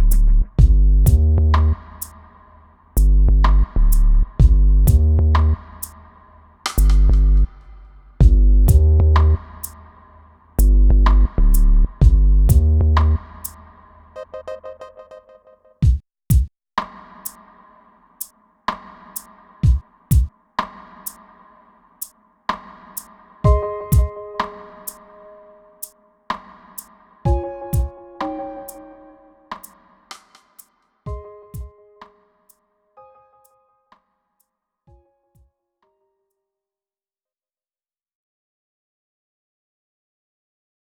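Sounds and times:
dub instrumental: 0:00.0 - 0:02.4, 0:03.0 - 0:06.0, 0:06.7 - 0:16.0, 0:23.4 - 0:25.9, 0:27.3 - 0:29.8, 0:31.1 - 0:32.2.

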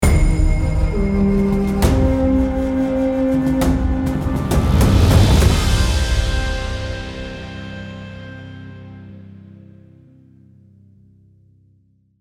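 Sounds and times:
bandit vignette win jingle: 0:00.0 - 0:08.7.

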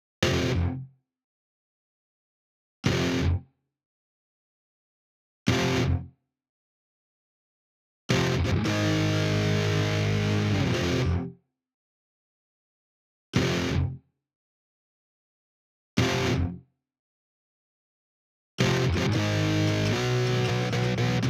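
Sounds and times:
guitars: 0:00.2 - 0:00.8, 0:02.9 - 0:03.4, 0:05.5 - 0:06.1, 0:08.1 - 0:11.3, 0:13.4 - 0:14.0, 0:16.0 - 0:16.6, 0:18.6 - 0:21.2.

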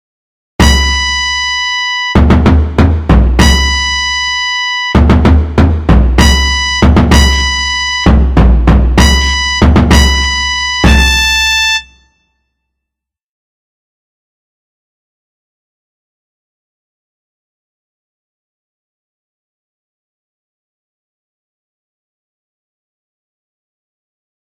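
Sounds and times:
flute and drum: 0:00.6 - 0:11.8.

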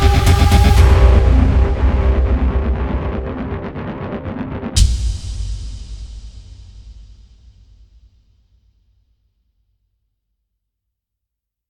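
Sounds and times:
cave music: 0:00.0 - 0:07.9.

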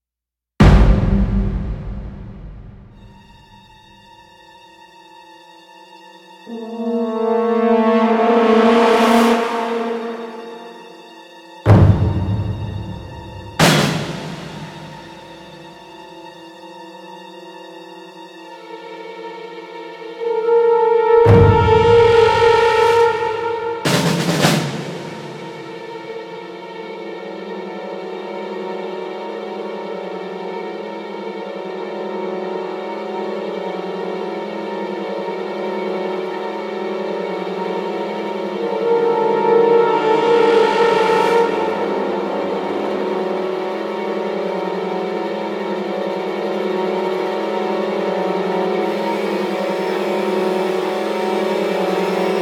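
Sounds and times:
heavy tension ambient music: 0:00.6 - 0:04.3, 0:06.4 - 0:16.4, 0:20.0 - 0:52.4.

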